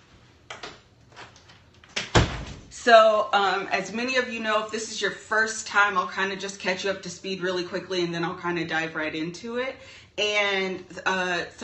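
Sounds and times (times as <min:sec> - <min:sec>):
door closing thumps and clicks: 0:01.9 - 0:02.8
speech: 0:02.8 - 0:11.6.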